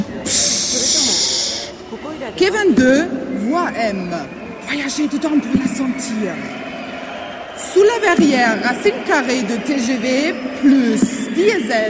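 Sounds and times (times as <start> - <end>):
230 J steam locomotive hissing steam: 0.0 - 1.9
speech: 0.3 - 0.6, 2.0 - 6.8, 7.8 - 11.8.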